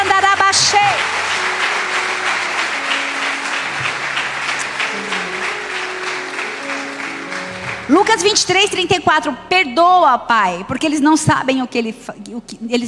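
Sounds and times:
sustained applause from a large audience: 0:00.0 - 0:08.6
speech: 0:07.9 - 0:12.8.

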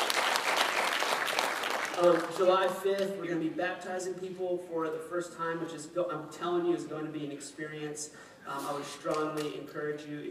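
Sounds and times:
audience applauding: 0:00.0 - 0:02.7
speech: 0:02.0 - 0:10.2.

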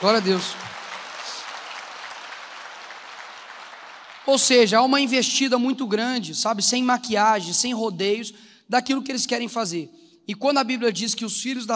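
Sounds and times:
speech: 0:00.0 - 0:00.7, 0:04.3 - 0:11.7
audience applause: 0:00.0 - 0:04.7.

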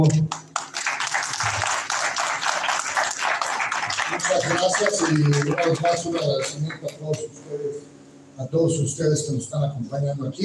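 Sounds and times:
speech: 0:00.0 - 0:00.4, 0:04.2 - 0:10.4
strong applause: 0:00.0 - 0:07.2.

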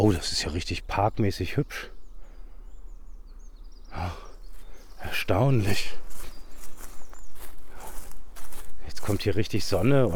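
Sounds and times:
speech: 0:00.1 - 0:02.0, 0:04.0 - 0:04.2, 0:05.0 - 0:06.0, 0:09.0 - 0:10.1
footsteps crossing a sunny forest clearing overgrown with moss: 0:04.4 - 0:10.1.

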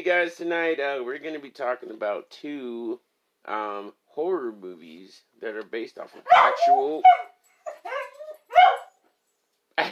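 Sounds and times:
speech: 0:00.0 - 0:07.3
pet dog barking and yipping: 0:06.2 - 0:09.0.

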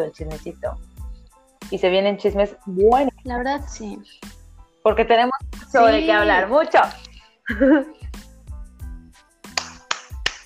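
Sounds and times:
speech: 0:00.0 - 0:01.0, 0:01.7 - 0:08.0
laughter: 0:07.5 - 0:07.9
hand clapping: 0:09.4 - 0:10.4.

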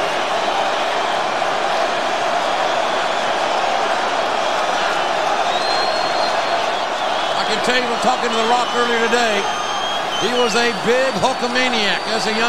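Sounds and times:
large arena crowd roaring and cheering: 0:00.0 - 0:12.4
speech: 0:07.7 - 0:09.6, 0:10.2 - 0:12.4.

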